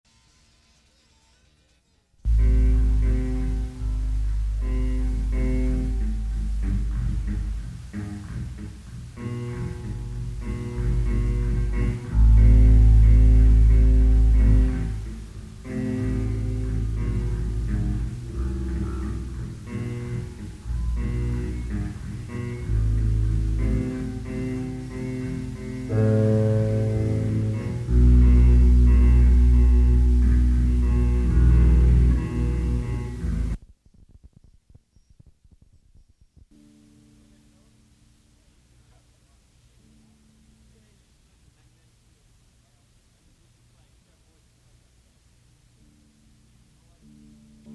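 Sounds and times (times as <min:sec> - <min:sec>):
punk rock music: 0:02.3 - 0:33.6.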